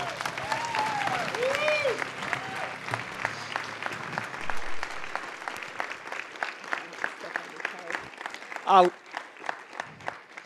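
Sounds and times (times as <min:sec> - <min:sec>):
whoops and cheers: 0:00.0 - 0:03.0
audience applause welcoming speaker: 0:00.0 - 0:10.4
speech: 0:08.7 - 0:09.0.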